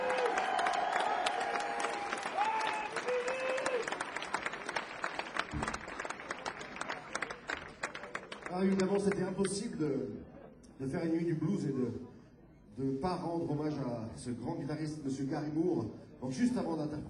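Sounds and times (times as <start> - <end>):
audience cheering: 0.0 - 8.1
audience applause: 0.0 - 9.4
speech: 8.7 - 12.0, 12.8 - 17.0.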